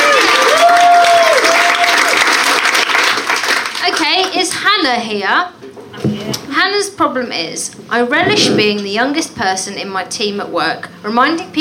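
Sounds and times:
crowd applause: 0.0 - 3.8
speech: 4.9 - 11.5.

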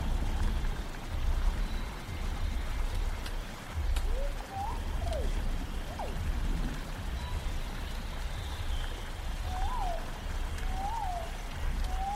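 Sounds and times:
rumbling low noise and hiss in a prehistoric forest scene: 0.0 - 12.1
rising and falling whistle-like calls: 4.0 - 6.2, 7.1 - 12.1.

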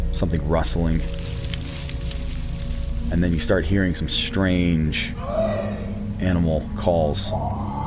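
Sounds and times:
speech: 0.1 - 1.2, 3.1 - 5.4, 6.2 - 7.7
branch snapping in the woods: 1.0 - 3.4.

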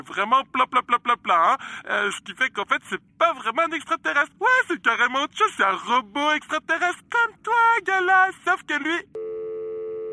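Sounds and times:
speech: 0.0 - 9.2
telephone busy tone after a call cuts off: 9.2 - 10.1.

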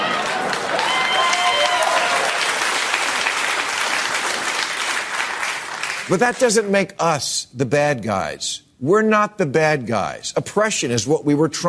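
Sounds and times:
brief tonal cheer or voice: 0.0 - 2.4
audience applause: 0.0 - 6.5
speech: 6.1 - 11.6.

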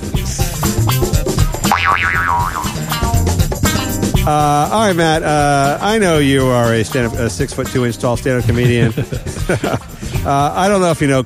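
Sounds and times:
music: 0.0 - 11.2
cartoon boing sound effect: 1.6 - 3.2
speech: 4.3 - 11.2
laughter: 8.2 - 10.4.

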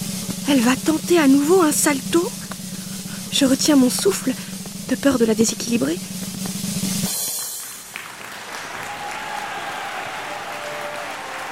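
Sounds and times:
speech: 0.5 - 2.4, 3.3 - 6.2
applause: 7.3 - 11.5.

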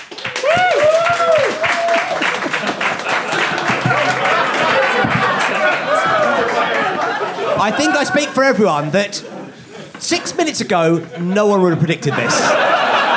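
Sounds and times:
live audience applauding: 0.0 - 10.0
whoops and cheers: 0.2 - 2.6
laughter: 1.2 - 13.1
murmur of chattering voices: 2.4 - 13.1
speech: 7.6 - 9.4, 10.0 - 12.7.

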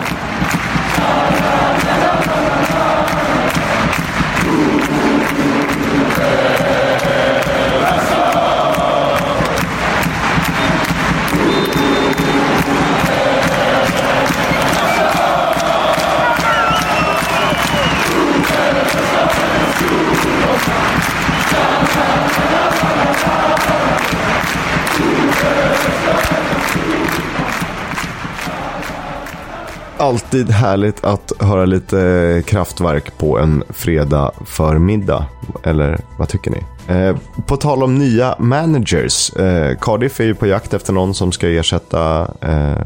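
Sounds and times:
scattered claps: 0.0 - 29.9
large football crowd singing a chant: 0.0 - 30.5
shouts: 14.6 - 18.3
speech: 30.3 - 42.8.

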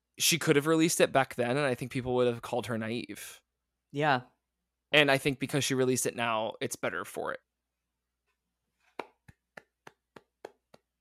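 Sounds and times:
speech: 0.2 - 4.3, 4.9 - 7.5
hands clapping: 8.9 - 10.9.

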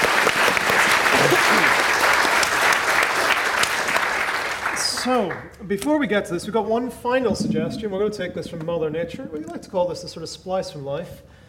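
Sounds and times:
audience applause: 0.0 - 5.4
speech: 5.0 - 11.4.

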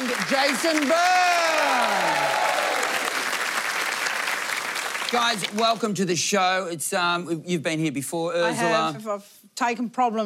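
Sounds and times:
audience applauding guests of a comedy panel show: 0.0 - 6.1
speech: 0.3 - 2.4, 5.1 - 10.2.

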